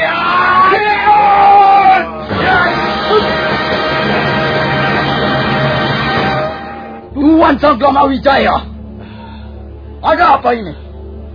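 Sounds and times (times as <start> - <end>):
warriors shouting as they leap to ambush: 0.0 - 6.8
speech: 7.6 - 8.7, 10.0 - 10.8.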